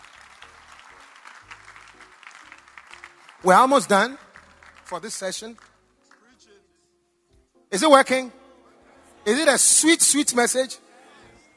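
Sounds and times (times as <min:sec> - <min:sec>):
audience clapping: 0:00.0 - 0:06.3
speech: 0:03.4 - 0:04.2, 0:04.9 - 0:05.7, 0:07.7 - 0:08.4, 0:09.2 - 0:10.8.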